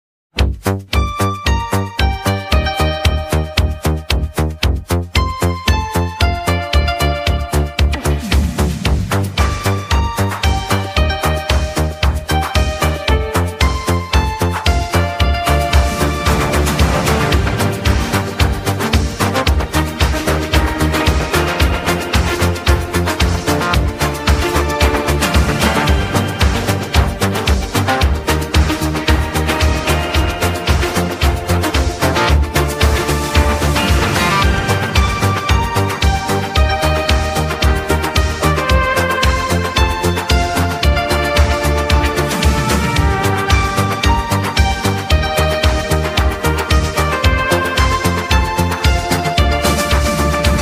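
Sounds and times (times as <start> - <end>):
Italo music: 0.4 - 50.6.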